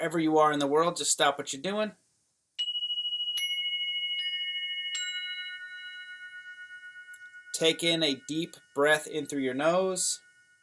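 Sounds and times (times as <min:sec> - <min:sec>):
speech: 0:00.0 - 0:02.1, 0:07.6 - 0:10.2
meditation chimes ringing: 0:02.6 - 0:10.6.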